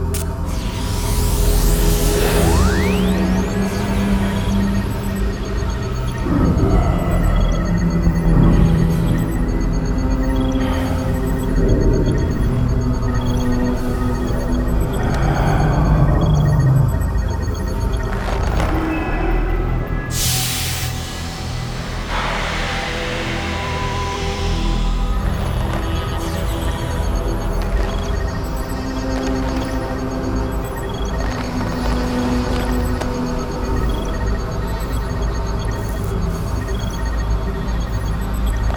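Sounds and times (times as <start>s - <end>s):
arrival sound effect music: 0.2s - 38.7s.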